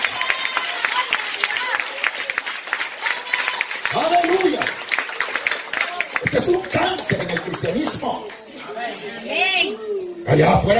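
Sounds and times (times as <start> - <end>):
audience applause: 0.0 - 8.5
speech: 6.5 - 10.7.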